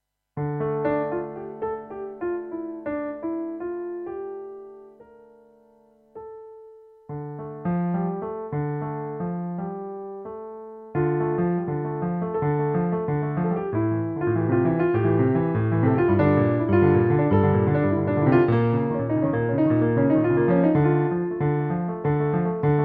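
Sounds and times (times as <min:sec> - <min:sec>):
piano chords: 0:00.4 - 0:22.8.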